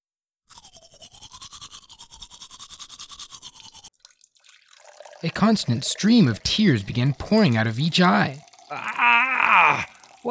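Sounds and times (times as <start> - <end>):
brushing teeth with a toothbrush: 0.5 - 3.9
speech: 5.2 - 8.9.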